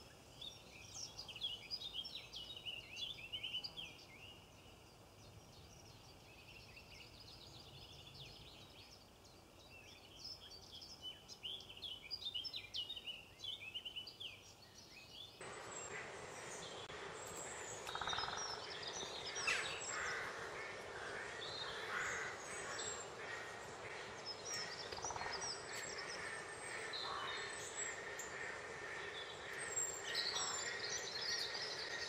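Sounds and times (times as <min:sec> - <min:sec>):
nature sounds: 0:00.0 - 0:32.0
robins chirping and singing: 0:00.4 - 0:32.0.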